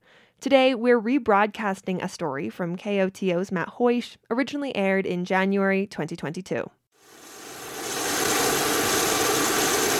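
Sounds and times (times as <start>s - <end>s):
speech: 0.4s - 7.2s
lower-emission plane engine roar while refueling on an airport tarmac: 7.0s - 9.9s.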